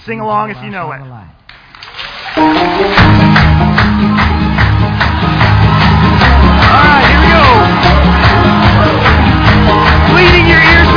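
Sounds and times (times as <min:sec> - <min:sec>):
speech: 0:00.0 - 0:01.4
audience clapping along: 0:01.5 - 0:10.9.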